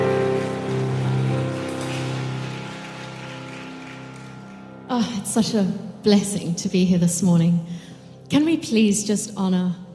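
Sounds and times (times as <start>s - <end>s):
steady crowd applause: 0.0s - 4.8s
speech: 4.9s - 9.8s.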